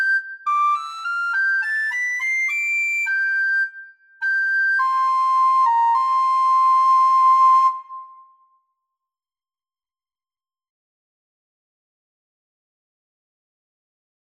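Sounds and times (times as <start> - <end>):
slow recorder piece: 0.0 - 8.6.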